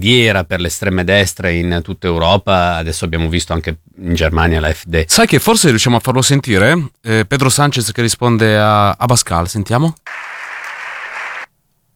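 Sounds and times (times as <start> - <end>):
speech: 0.0 - 10.4
applause in played recording: 10.1 - 11.5.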